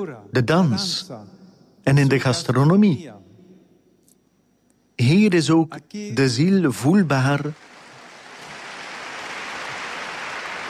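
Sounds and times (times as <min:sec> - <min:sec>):
speech: 0:00.0 - 0:03.2, 0:05.0 - 0:07.7
large crowd applause: 0:07.6 - 0:10.6.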